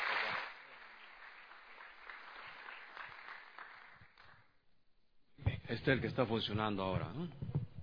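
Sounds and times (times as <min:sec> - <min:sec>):
audience applause: 0:00.0 - 0:04.4
speech: 0:05.7 - 0:07.6.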